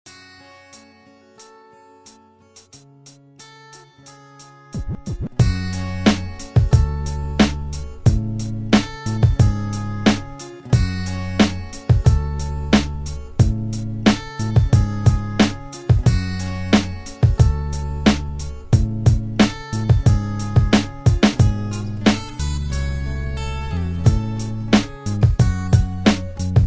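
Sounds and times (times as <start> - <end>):
beats: 4.7 - 22.8, 24.0 - 26.6.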